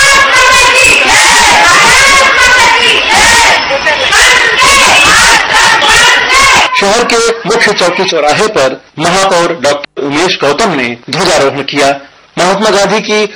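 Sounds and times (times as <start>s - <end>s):
large crowd chanting patriotic slogans in unison: 0.0s - 7.1s
speech: 6.8s - 13.3s.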